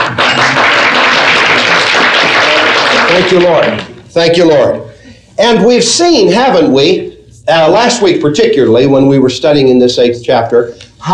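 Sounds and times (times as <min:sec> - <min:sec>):
congregation applauding at a church service: 0:00.0 - 0:04.0
speech: 0:03.2 - 0:11.1.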